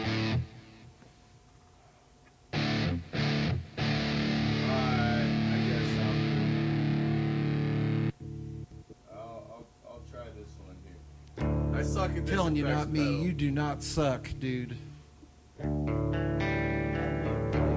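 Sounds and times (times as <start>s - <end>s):
electric guitar with distortion effect: 0.0s - 0.8s, 2.5s - 8.8s, 15.6s - 17.7s
speech: 12.0s - 14.9s.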